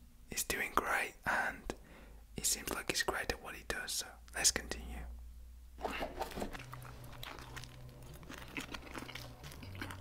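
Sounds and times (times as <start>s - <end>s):
low steady hum: 0.0s - 9.9s
speech: 0.3s - 1.8s, 2.4s - 5.2s, 5.8s - 6.8s
crunching eating of a pizza slice with a spoon in an ASMR food video: 5.8s - 9.9s.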